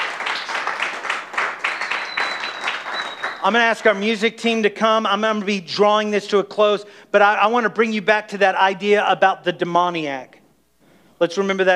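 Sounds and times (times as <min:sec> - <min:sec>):
audience clapping: 0:00.0 - 0:04.0
speech: 0:03.4 - 0:10.4, 0:11.2 - 0:11.7.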